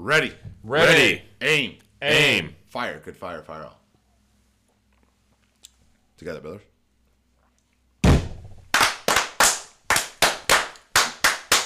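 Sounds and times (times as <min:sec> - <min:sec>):
speech: 0:00.0 - 0:03.8, 0:06.2 - 0:06.7
group clapping in unison after toast: 0:08.7 - 0:11.6.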